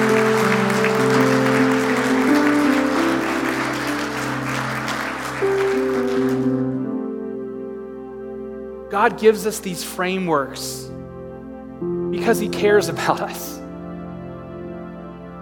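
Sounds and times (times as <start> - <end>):
audience applause: 0.0 - 6.8
speech: 9.0 - 11.0, 12.2 - 13.6.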